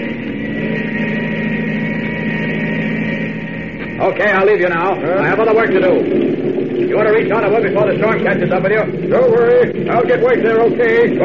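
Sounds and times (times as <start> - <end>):
airplane engine starting: 0.0 - 11.2
speech: 4.0 - 11.2.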